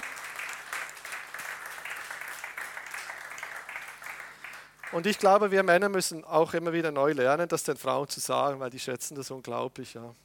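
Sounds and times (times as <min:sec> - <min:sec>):
men clapping: 0:00.0 - 0:05.4
speech: 0:04.9 - 0:10.2.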